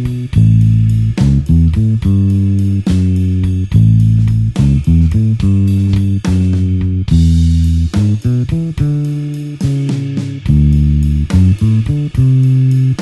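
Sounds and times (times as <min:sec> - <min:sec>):
slow blues bassline in A: 0:00.0 - 0:13.0.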